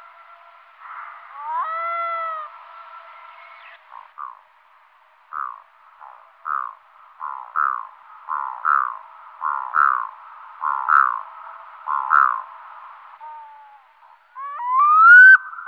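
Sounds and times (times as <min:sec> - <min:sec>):
black-throated loon calling: 0:01.4 - 0:02.5, 0:05.3 - 0:11.3, 0:11.9 - 0:12.5, 0:13.2 - 0:15.6.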